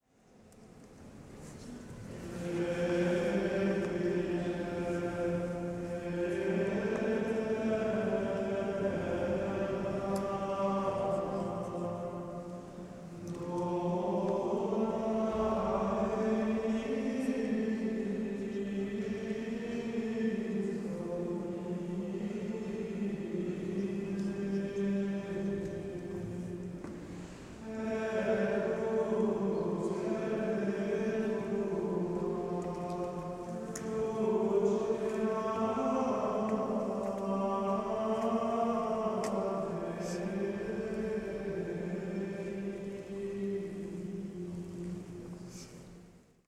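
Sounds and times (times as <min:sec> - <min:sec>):
male choir singing: 0:02.2 - 0:45.5.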